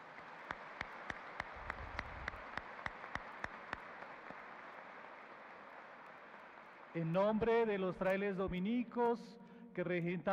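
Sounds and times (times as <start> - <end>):
audience applause: 0.0 - 7.7
speech: 7.0 - 10.3.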